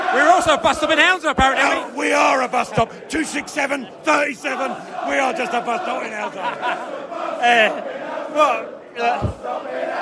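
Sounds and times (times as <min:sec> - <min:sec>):
football fans chanting: 0:00.0 - 0:10.0
speech: 0:00.1 - 0:10.0
laughter: 0:05.2 - 0:07.8
thump: 0:09.2 - 0:09.5.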